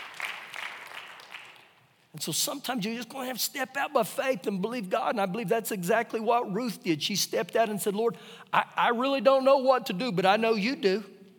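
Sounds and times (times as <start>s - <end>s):
audience clapping: 0.0s - 2.0s
speech: 2.1s - 11.1s.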